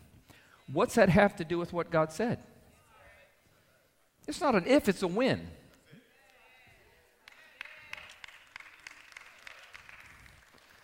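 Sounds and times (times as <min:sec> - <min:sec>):
speech: 0:00.7 - 0:02.5, 0:04.3 - 0:05.6
audience applause: 0:07.3 - 0:10.8.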